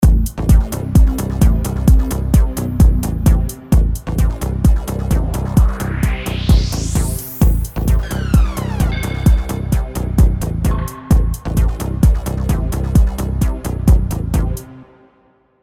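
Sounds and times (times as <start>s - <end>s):
music track: 0.0s - 15.6s.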